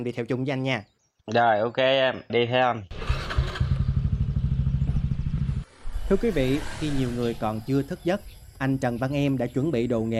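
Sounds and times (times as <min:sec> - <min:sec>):
speech: 0:00.0 - 0:03.0, 0:06.1 - 0:10.1
motorbike engine ridden into a sugar palm orchard: 0:02.9 - 0:07.7.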